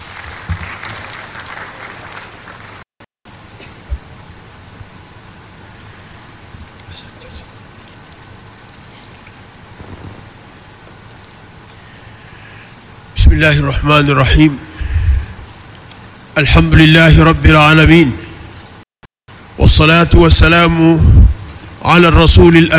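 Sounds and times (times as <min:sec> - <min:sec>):
gathering applauding: 0:00.0 - 0:02.9
speech: 0:13.4 - 0:14.6, 0:16.4 - 0:18.2, 0:19.8 - 0:22.7.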